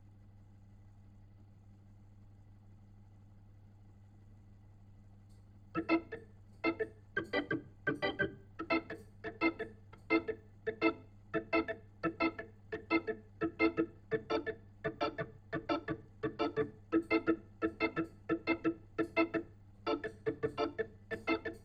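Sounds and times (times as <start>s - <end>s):
Hammond organ through a Leslie speaker: 5.7s - 21.6s.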